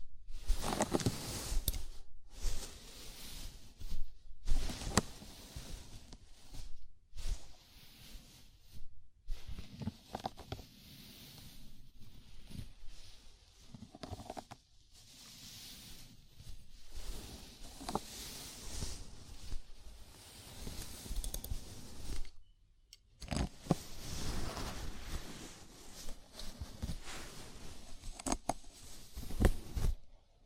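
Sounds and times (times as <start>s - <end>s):
fingers rubbing and scratching through hair in a scalp massage: 0.5s - 22.3s, 23.5s - 30.1s.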